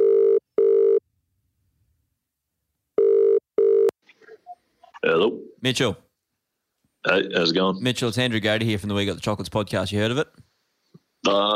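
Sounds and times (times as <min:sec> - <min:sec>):
telephone ringback tone for an outgoing call: 0:00.0 - 0:01.0, 0:03.0 - 0:03.9
speech: 0:05.0 - 0:06.0, 0:07.0 - 0:10.5, 0:11.2 - 0:11.5.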